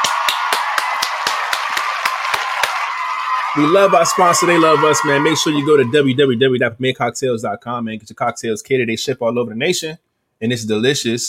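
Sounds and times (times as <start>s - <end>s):
round of applause: 0.0s - 5.9s
speech: 3.6s - 11.2s.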